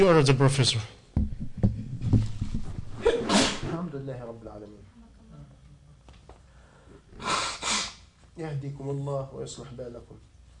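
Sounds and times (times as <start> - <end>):
speech: 0.0 - 1.0, 3.9 - 4.9, 8.4 - 10.3
person sneezing: 3.0 - 3.8, 7.1 - 8.1.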